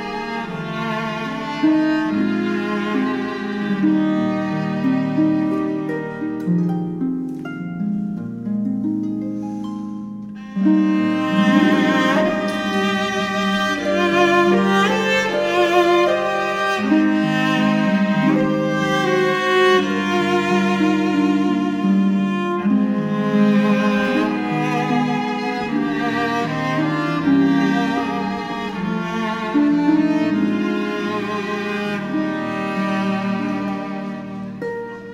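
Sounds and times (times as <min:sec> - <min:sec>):
violin: 0:00.0 - 0:09.0, 0:09.6 - 0:35.1
cello: 0:00.0 - 0:35.1
harp: 0:00.0 - 0:35.1.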